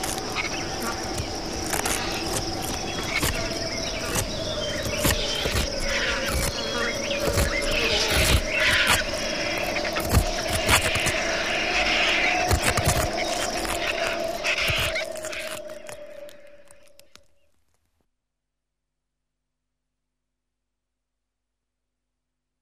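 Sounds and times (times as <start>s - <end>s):
feeding vultures hissing and squawking: 0.0s - 16.8s.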